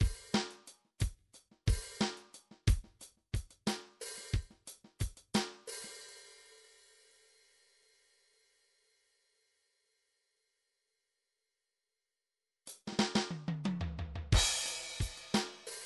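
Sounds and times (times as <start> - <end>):
midi drums: 0.0 - 6.0, 12.7 - 15.8.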